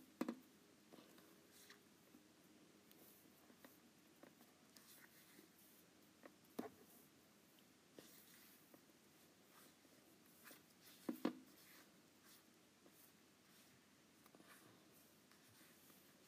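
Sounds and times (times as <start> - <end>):
background hiss: 0.0 - 16.2
Apple Pencil tapping and sliding across an iPad screen: 0.2 - 0.4.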